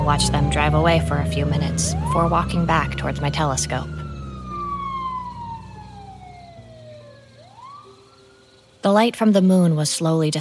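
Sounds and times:
low engine hum: 0.0 - 7.8
police SUV siren whooping: 0.0 - 8.3
speech: 0.1 - 4.0, 8.8 - 10.3.

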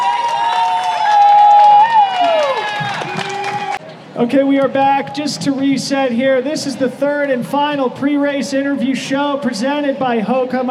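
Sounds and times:
audience applause: 0.0 - 3.8
speech: 4.2 - 10.6.

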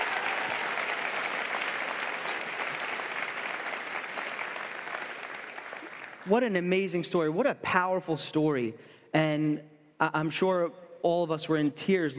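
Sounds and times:
audience applause: 0.0 - 6.4
speech: 6.3 - 12.1.

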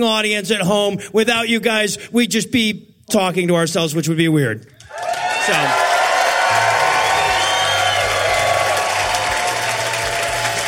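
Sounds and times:
speech: 0.0 - 5.9
live audience standing ovation applause at the close of a show: 4.9 - 10.6.

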